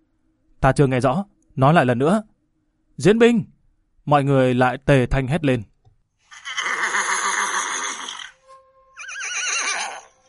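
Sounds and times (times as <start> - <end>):
speech: 0.6 - 2.3, 3.0 - 5.7
black war horse neighing: 6.3 - 8.4, 9.0 - 10.2.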